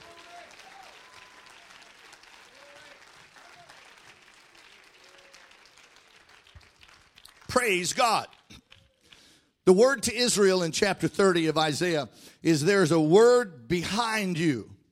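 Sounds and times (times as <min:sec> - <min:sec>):
audience clapping hands: 0:00.0 - 0:09.4
speech: 0:07.6 - 0:08.3, 0:09.7 - 0:14.7.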